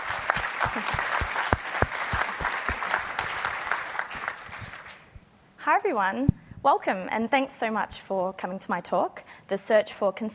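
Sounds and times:
audience at a talk applauding a speaker welcomed to the stage: 0:00.0 - 0:05.1
speech: 0:00.7 - 0:01.2, 0:05.7 - 0:10.3.

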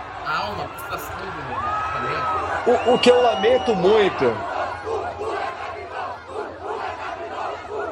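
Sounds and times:
large crowd of football supporters chanting and cheering: 0:00.0 - 0:07.9
speech: 0:00.3 - 0:04.5.

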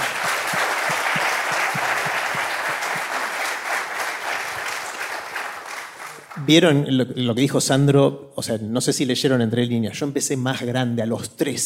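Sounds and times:
crowd applauding: 0:00.0 - 0:06.6
speech: 0:06.4 - 0:11.6.

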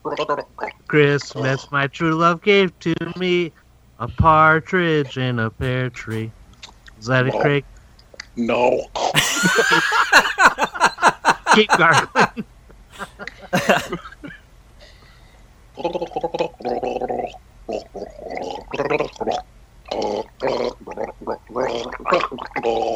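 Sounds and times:
speech: 0:00.0 - 0:06.4, 0:07.0 - 0:07.7, 0:08.4 - 0:10.7, 0:11.6 - 0:12.5, 0:15.8 - 0:17.0, 0:21.6 - 0:22.9
laughter: 0:09.2 - 0:14.4
person gargling while trying to sing Christmas songs: 0:15.8 - 0:22.9.

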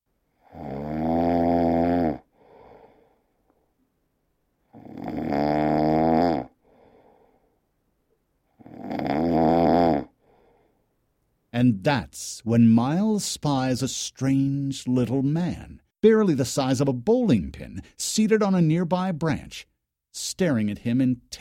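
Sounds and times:
sleepy growling snore: 0:00.3 - 0:03.2, 0:04.6 - 0:07.2, 0:08.5 - 0:10.6
speech: 0:11.6 - 0:21.3.

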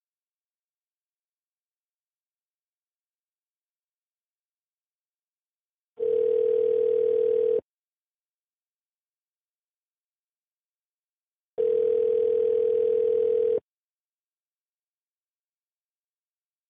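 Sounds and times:
telephone dial tone after a call disconnects: 0:06.0 - 0:07.7, 0:11.6 - 0:13.7.

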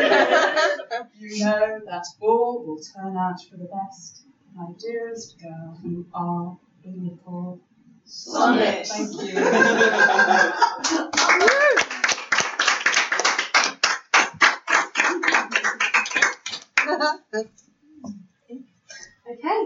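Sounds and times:
laughter: 0:00.0 - 0:01.4, 0:08.9 - 0:12.0
speech: 0:01.1 - 0:12.1, 0:17.0 - 0:18.7, 0:19.3 - 0:19.6
audience clapping: 0:10.7 - 0:17.2.

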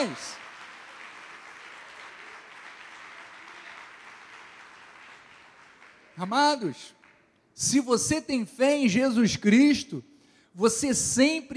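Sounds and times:
speech: 0:00.0 - 0:00.4, 0:06.2 - 0:07.0, 0:07.6 - 0:11.5
audience applause: 0:00.0 - 0:06.2.

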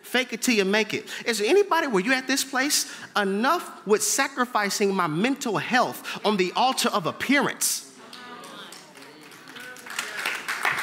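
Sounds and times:
speech: 0:00.1 - 0:07.9
audience clapping: 0:08.0 - 0:10.8.

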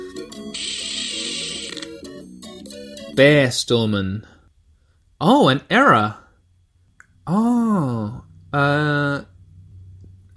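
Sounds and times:
speech: 0:00.2 - 0:00.8, 0:03.2 - 0:04.4, 0:05.2 - 0:06.2, 0:07.3 - 0:09.3
sustained electronic tones: 0:00.5 - 0:01.9
arcade machine starting up with a mechanical whir in a video game: 0:00.6 - 0:01.9.

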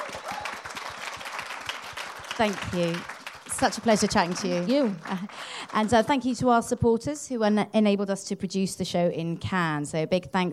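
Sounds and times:
audience applause: 0:00.0 - 0:06.3
speech: 0:02.4 - 0:10.5.

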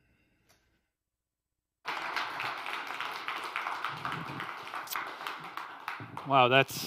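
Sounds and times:
church audience applauding to welcome a visiting preacher: 0:01.8 - 0:06.8.

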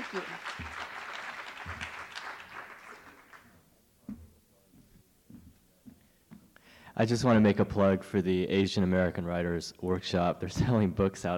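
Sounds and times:
audience applause: 0:00.0 - 0:03.5
speech: 0:00.1 - 0:00.7, 0:07.0 - 0:11.3.

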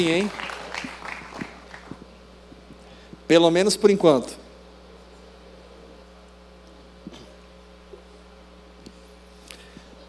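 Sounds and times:
speech: 0:00.0 - 0:00.4, 0:03.3 - 0:04.4
audience applause: 0:00.0 - 0:02.0.

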